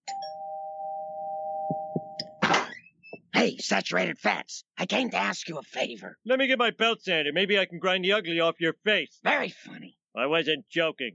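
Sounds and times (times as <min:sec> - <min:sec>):
electronic doorbell tone: 0:00.0 - 0:02.4
speech: 0:03.4 - 0:11.1.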